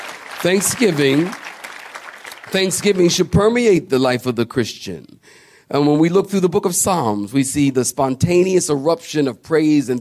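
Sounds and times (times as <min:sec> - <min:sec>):
audience clapping hands: 0:00.0 - 0:03.3
speech: 0:00.4 - 0:01.4, 0:02.5 - 0:09.9.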